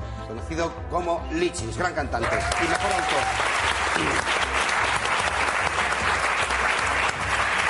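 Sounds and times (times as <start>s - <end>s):
speech: 0.3s - 4.5s
audience applause: 2.2s - 7.6s.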